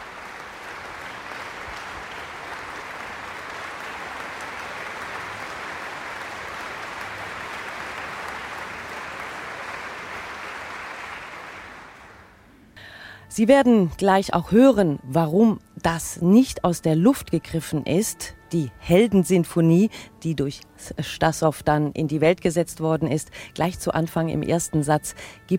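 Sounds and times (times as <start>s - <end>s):
concert audience applause: 0.0s - 12.4s
speech: 13.4s - 25.5s.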